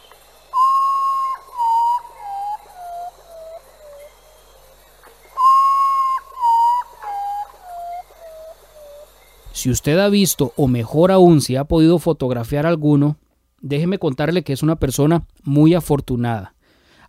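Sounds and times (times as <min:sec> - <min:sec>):
potoo song: 0:00.0 - 0:10.8
speech: 0:09.6 - 0:17.0.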